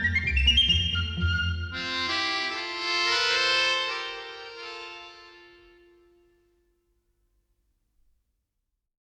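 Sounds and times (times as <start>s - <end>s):
hornpipe playing: 0.0s - 6.4s.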